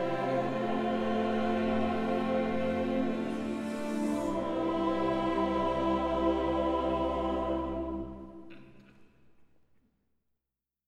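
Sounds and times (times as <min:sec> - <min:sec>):
mixed choir singing: 0:00.0 - 0:08.5.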